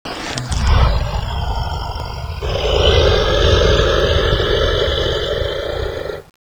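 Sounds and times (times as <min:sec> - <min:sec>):
monster: 0:00.0 - 0:06.4.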